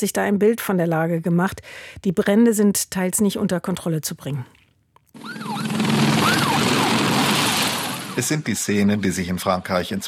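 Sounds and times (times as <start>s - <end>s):
speech: 0.0s - 4.6s, 8.2s - 10.0s
fire brigade siren wailing: 5.2s - 8.3s.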